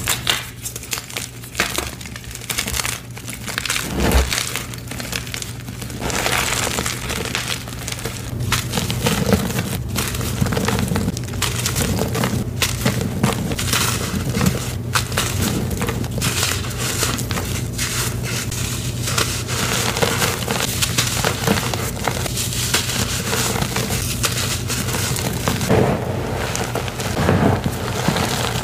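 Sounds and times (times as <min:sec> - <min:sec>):
rainbow gym chalk crinkling and crumbling: 0:00.0 - 0:28.6
steady low hum: 0:03.6 - 0:13.0.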